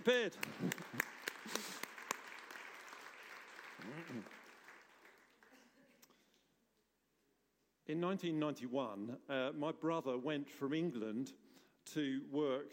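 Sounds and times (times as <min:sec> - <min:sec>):
speech: 0:00.0 - 0:01.1, 0:03.9 - 0:04.4, 0:07.9 - 0:12.7
soft scattered applause from a group: 0:00.1 - 0:05.9.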